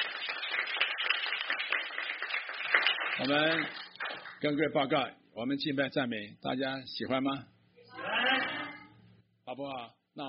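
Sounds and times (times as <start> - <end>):
audience applause: 0.0 - 4.4
speech: 3.2 - 3.8, 4.4 - 7.5, 9.6 - 10.2.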